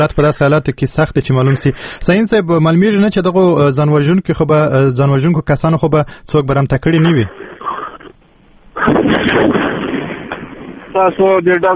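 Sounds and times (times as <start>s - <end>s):
speech: 0.0s - 7.4s, 9.3s - 9.6s, 11.0s - 11.7s
gunfire during an attack on a building by suicide attackers: 8.8s - 11.5s.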